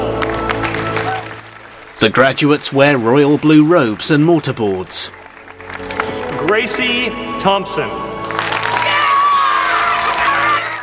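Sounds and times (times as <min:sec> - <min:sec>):
brothers cheering at a graduation ceremony: 0:00.0 - 0:05.1, 0:08.3 - 0:10.8
graduation ceremony crowd: 0:00.0 - 0:10.8
speech: 0:02.0 - 0:05.2, 0:06.4 - 0:08.1.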